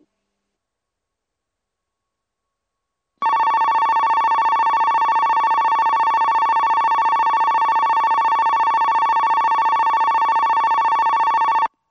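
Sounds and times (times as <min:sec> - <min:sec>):
Kogota platform 3 sounds: 0:03.2 - 0:11.7.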